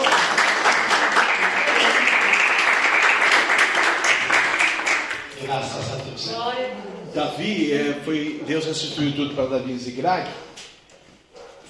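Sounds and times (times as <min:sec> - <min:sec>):
audience applause: 0:00.0 - 0:05.3
speech: 0:07.4 - 0:10.6.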